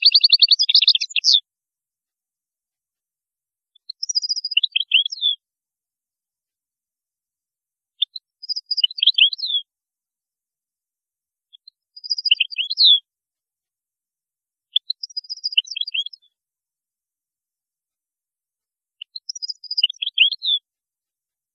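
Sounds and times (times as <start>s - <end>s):
European goldfinch song: 0.0s - 1.5s, 3.7s - 5.4s, 8.0s - 9.7s, 11.5s - 13.1s, 14.7s - 16.4s, 19.0s - 20.7s.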